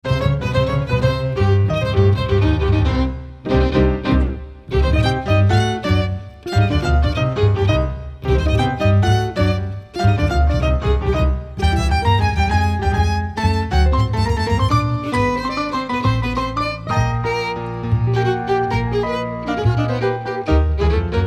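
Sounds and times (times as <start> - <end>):
rumba music: 0.0 - 21.2.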